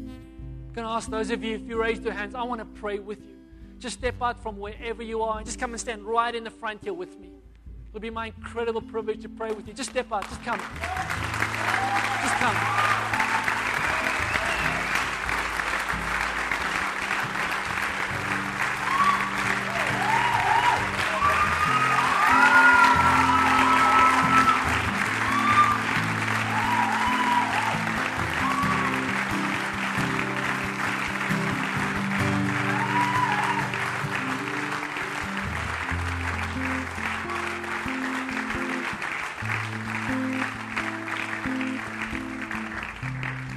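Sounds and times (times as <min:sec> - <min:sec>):
speech: 0:00.8 - 0:11.3, 0:11.9 - 0:12.8
audience clapping: 0:09.5 - 0:43.5
faint voices and cheers: 0:10.6 - 0:41.9.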